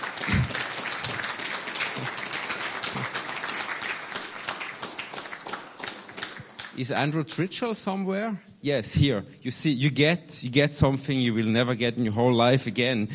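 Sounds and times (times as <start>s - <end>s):
audience clapping: 0.0s - 7.5s
speech: 6.8s - 13.1s.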